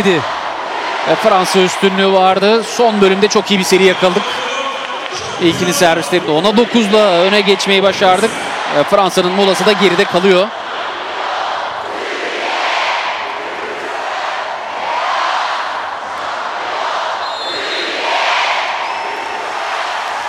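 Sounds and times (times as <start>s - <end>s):
speech: 0.0s - 0.4s, 1.0s - 4.5s, 5.1s - 10.6s
large arena crowd cheering in support: 0.0s - 20.2s
sharp whistles: 17.2s - 18.0s, 18.8s - 19.3s.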